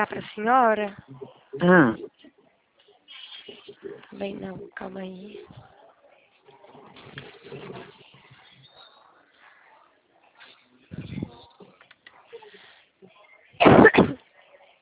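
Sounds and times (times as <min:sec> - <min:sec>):
speech: 0:00.0 - 0:02.1, 0:03.9 - 0:05.7
person coughing: 0:13.6 - 0:14.2.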